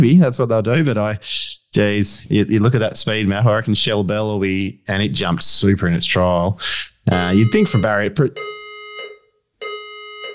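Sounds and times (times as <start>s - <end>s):
speech: 0.0s - 8.6s
building fire alarm sirens during evacuation: 7.2s - 10.3s.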